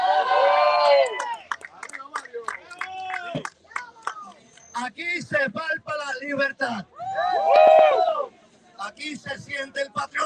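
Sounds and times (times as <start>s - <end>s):
applause: 0.6s - 4.7s
speech: 5.4s - 8.3s, 8.9s - 10.2s.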